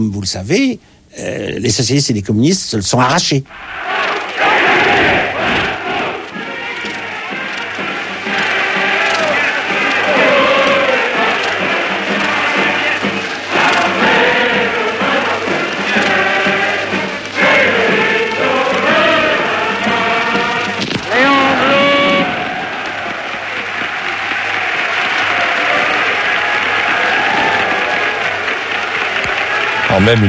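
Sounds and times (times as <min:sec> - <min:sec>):
speech: 0:00.0 - 0:04.1
crowd singing at a rally: 0:03.5 - 0:30.2.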